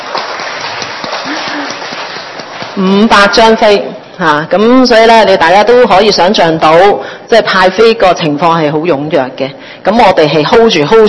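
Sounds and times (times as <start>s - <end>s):
audience applause: 0.0s - 2.8s
speech: 2.8s - 11.0s.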